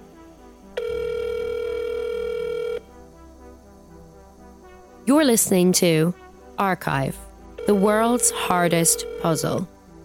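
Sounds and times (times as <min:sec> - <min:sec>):
faint low music: 0:00.0 - 0:10.0
telephone ring tone while calling a hotline: 0:00.8 - 0:02.8, 0:07.6 - 0:09.7
speech: 0:05.1 - 0:09.8.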